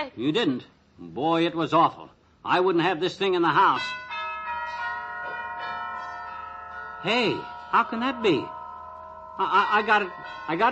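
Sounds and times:
speech: 0:00.0 - 0:04.0, 0:07.0 - 0:08.6, 0:09.4 - 0:10.7
church bells ringing down the block: 0:03.7 - 0:10.7.

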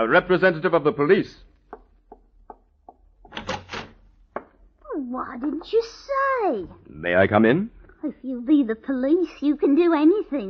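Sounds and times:
speech: 0:00.0 - 0:01.5, 0:05.1 - 0:10.4
door being opened: 0:03.3 - 0:04.0.

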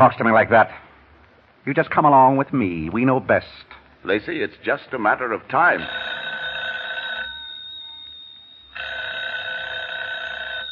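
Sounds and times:
speech: 0:00.0 - 0:00.8, 0:01.6 - 0:06.2
telephone bell ringing: 0:05.8 - 0:10.7.

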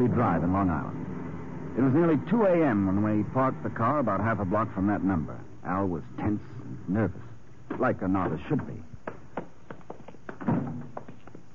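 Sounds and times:
speech: 0:00.0 - 0:01.1, 0:01.8 - 0:08.9
footsteps at night: 0:07.2 - 0:11.5.

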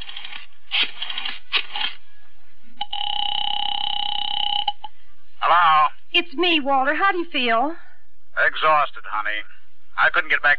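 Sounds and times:
telephone buzzing ring tone: 0:02.8 - 0:04.9
speech: 0:06.2 - 0:07.8, 0:08.4 - 0:10.5.

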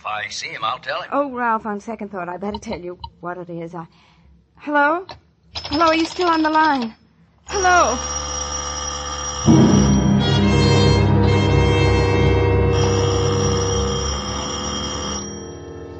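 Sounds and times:
speech: 0:00.1 - 0:08.2
doorbell ringing: 0:07.5 - 0:15.9.

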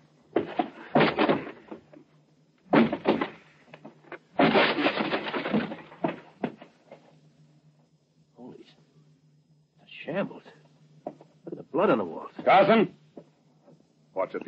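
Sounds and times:
low steady hum: 0:00.0 - 0:14.4
door being forced open: 0:00.4 - 0:01.8, 0:02.7 - 0:03.4, 0:04.4 - 0:06.7
speech: 0:11.8 - 0:13.0.

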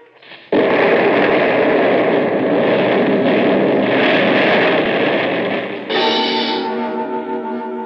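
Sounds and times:
explosion blast: 0:00.0 - 0:07.0
ringing tonal hum: 0:03.4 - 0:07.8.

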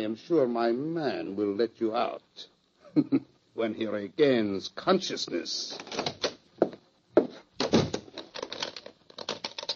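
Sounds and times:
speech: 0:00.0 - 0:06.1
door thudding shut: 0:07.6 - 0:08.1.

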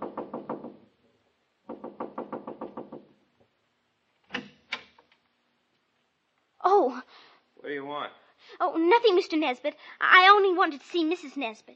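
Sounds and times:
repeated knocking on a front door: 0:00.0 - 0:00.9, 0:01.6 - 0:03.2
speech: 0:06.8 - 0:11.7.

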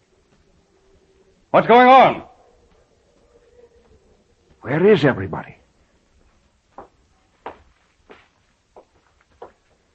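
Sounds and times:
footsteps overhead: 0:00.2 - 0:00.6, 0:02.6 - 0:04.7, 0:06.0 - 0:09.9
speech: 0:01.5 - 0:02.3, 0:04.6 - 0:05.6.

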